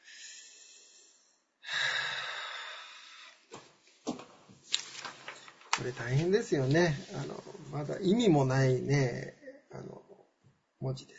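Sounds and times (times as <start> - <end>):
deep breathing during a physical exercise routine: 0.0 - 3.7
speech: 5.8 - 9.4, 10.8 - 11.1.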